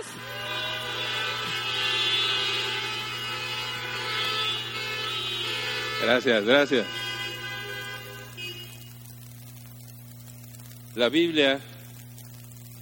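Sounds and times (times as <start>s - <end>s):
horns blowing: 0.0s - 9.7s
speech: 6.0s - 7.0s, 11.0s - 11.7s.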